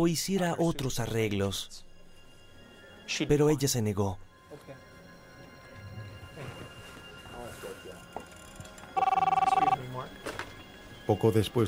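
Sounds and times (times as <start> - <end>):
speech: 0.0 - 1.9, 3.1 - 4.8, 11.1 - 11.6
telephone ringing for an incoming call: 8.9 - 9.9.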